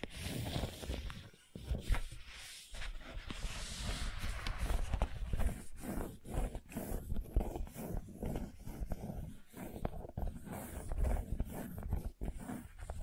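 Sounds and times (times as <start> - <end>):
gentle scratching: 0.0 - 13.0.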